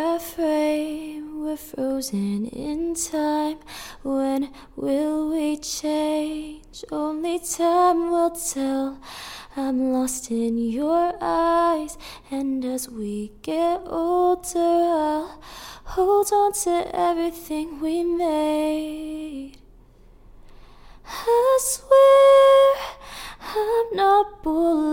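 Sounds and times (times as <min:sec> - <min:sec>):
EDM a cappella vocals in D sharp: 0:00.0 - 0:19.7, 0:21.0 - 0:24.9.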